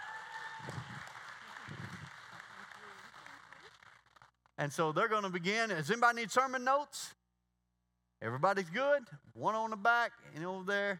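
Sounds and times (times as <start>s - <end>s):
audience clapping: 0.0s - 4.5s
speech: 4.6s - 7.2s, 8.2s - 10.9s.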